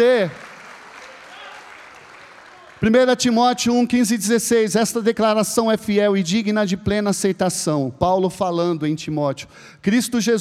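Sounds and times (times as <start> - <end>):
speech: 0.0 - 0.4, 2.8 - 10.4
audience applauding: 0.0 - 3.0.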